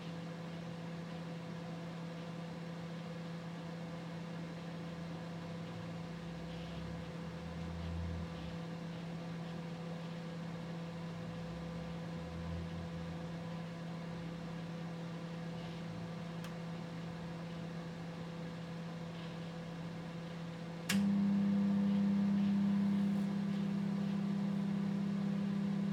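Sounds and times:
LG microwave oven: 0:00.0 - 0:25.9.

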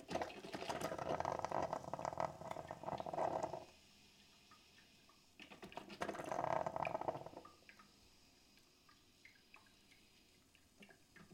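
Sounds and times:
coffee machine: 0:00.1 - 0:03.7, 0:05.9 - 0:07.4.

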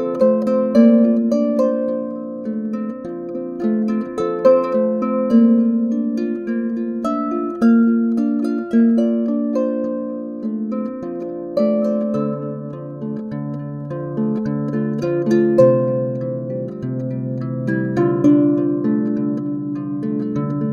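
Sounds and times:
harp: 0:00.0 - 0:20.7.

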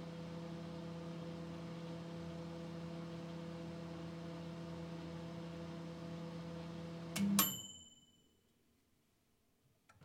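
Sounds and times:
microwave heating food: 0:00.0 - 0:07.8.

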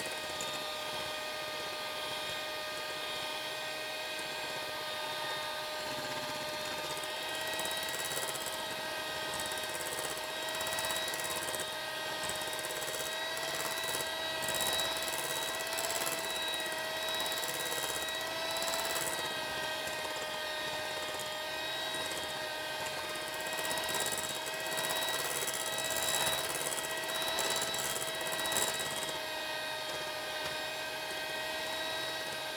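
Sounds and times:
kitchen mixer running: 0:00.0 - 0:32.5.

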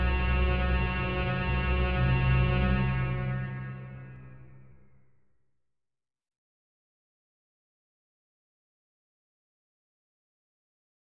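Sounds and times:
atmospheric sound of danger: 0:00.0 - 0:04.9.

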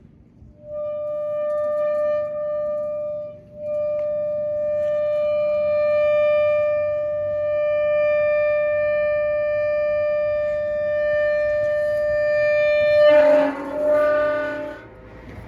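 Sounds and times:
metal creaking: 0:00.4 - 0:15.4.

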